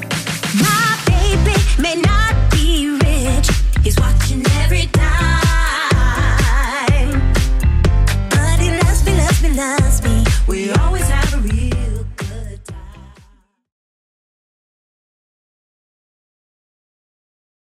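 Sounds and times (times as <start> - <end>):
80s style music at 124 bpm: 0.0 - 13.3.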